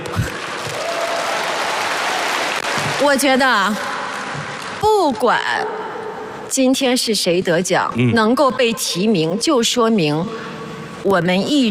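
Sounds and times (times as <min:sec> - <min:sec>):
audience applause: 0:00.0 - 0:03.2
speech: 0:03.0 - 0:03.9, 0:04.8 - 0:05.8, 0:06.5 - 0:11.6.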